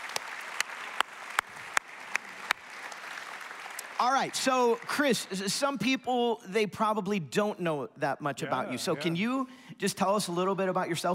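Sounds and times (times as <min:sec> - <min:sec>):
audience applause: 0:00.0 - 0:05.8
speech: 0:04.0 - 0:11.1.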